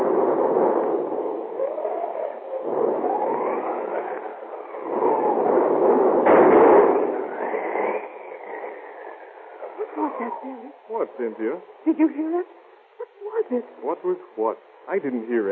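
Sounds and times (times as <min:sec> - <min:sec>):
thunder from a raging thunderstorm: 0:00.0 - 0:11.3
speech: 0:10.4 - 0:12.6, 0:13.5 - 0:15.4.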